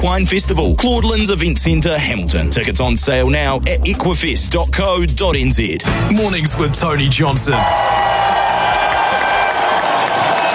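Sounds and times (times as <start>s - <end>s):
speech: 0.0s - 8.2s
audience round of applause on a morning talk show: 7.5s - 10.5s.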